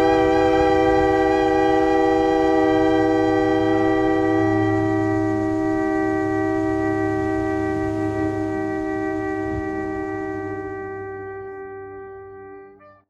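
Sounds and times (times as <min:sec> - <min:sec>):
shofar blasts collage: 0:00.0 - 0:13.0.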